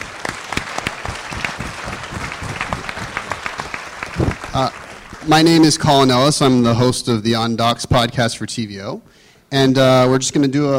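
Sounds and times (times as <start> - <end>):
audience applause: 0.0 - 6.2
speech: 4.6 - 10.7.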